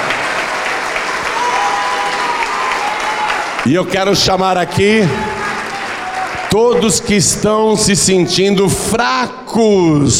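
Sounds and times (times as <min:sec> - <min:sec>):
audience applause: 0:00.0 - 0:07.7
speech: 0:03.7 - 0:05.2, 0:06.5 - 0:10.1.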